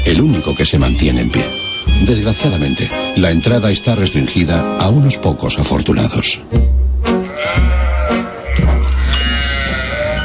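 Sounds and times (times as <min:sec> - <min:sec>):
speech: 0:00.1 - 0:06.7
sheep bleating: 0:07.2 - 0:10.2.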